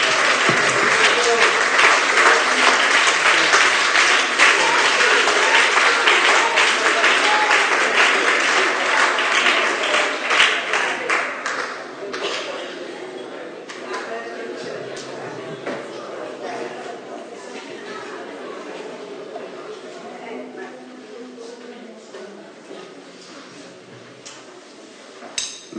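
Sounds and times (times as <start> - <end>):
audience applause: 0.0 - 12.2
crowd voices: 0.0 - 25.7.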